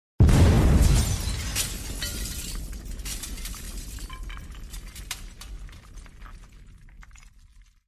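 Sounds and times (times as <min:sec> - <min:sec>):
cannonball crashing into the eastern part of the Kremlin's stone wall: 0:00.2 - 0:05.3
rattling crumbling debris: 0:00.2 - 0:07.8.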